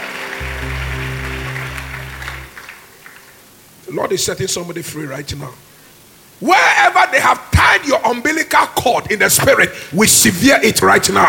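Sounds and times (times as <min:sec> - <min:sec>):
audience clapping hands: 0:00.0 - 0:03.4
speech: 0:03.9 - 0:05.7, 0:06.4 - 0:11.2.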